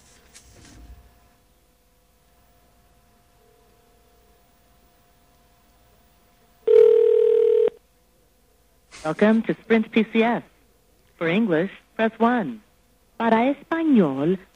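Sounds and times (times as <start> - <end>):
faint hum: 0.0 - 14.5
telephone ringback tone: 6.7 - 7.8
speech: 9.0 - 10.5, 11.2 - 12.6, 13.2 - 14.5.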